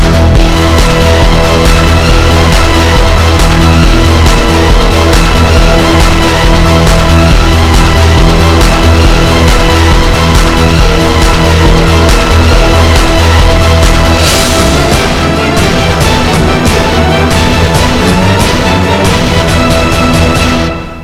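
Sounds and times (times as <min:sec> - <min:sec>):
samurai ambience: 0:00.0 - 0:21.0.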